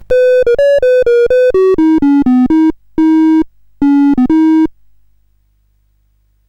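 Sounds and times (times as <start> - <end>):
CSG8580R5 sound chip game music: 0.1 - 4.7.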